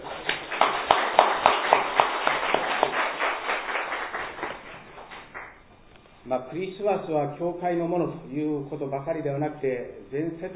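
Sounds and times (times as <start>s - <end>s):
audience clapping: 0.0s - 5.7s
speech: 0.6s - 0.8s, 6.3s - 10.5s.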